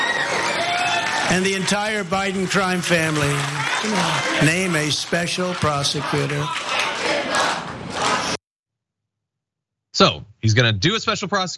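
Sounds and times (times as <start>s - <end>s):
rally crowd cheering: 0.0s - 8.4s
speech: 1.3s - 7.6s, 10.0s - 11.5s
rally crowd chanting: 3.2s - 8.4s.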